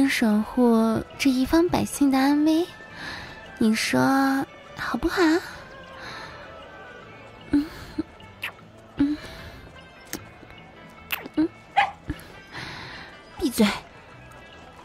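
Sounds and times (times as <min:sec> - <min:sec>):
speech: 0:00.0 - 0:05.6, 0:13.6 - 0:13.8
dog barking and yipping: 0:11.8 - 0:12.0.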